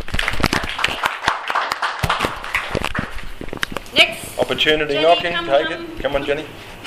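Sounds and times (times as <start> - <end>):
audience clapping: 0.0 - 3.8
speech: 4.5 - 6.7.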